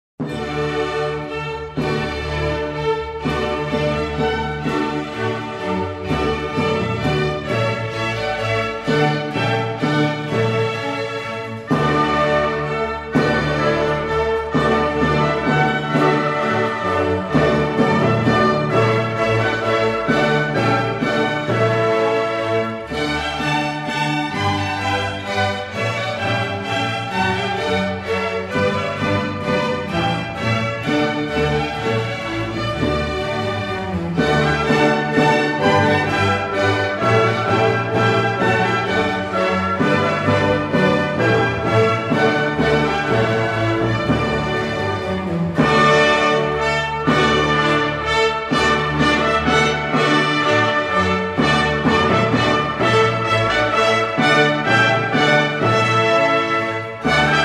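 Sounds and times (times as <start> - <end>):
minuet: 0.2 - 57.4.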